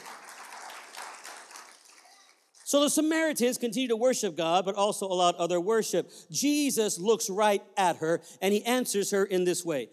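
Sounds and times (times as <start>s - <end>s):
audience clapping hands: 0.0s - 2.7s
speech: 2.7s - 9.9s.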